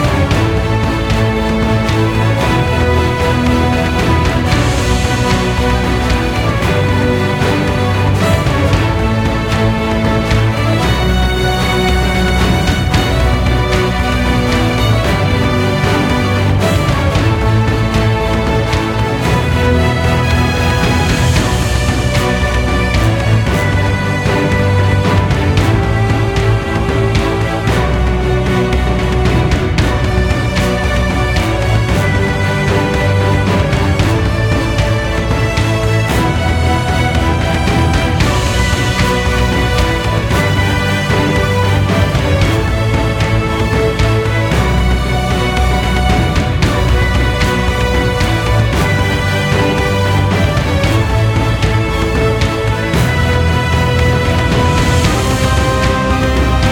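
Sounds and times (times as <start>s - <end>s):
battle music loop: 0.0s - 56.7s.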